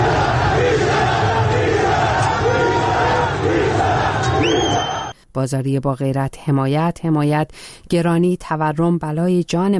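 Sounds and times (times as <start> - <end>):
protesters shouting slogans: 0.0 - 5.1
speech: 5.4 - 9.7.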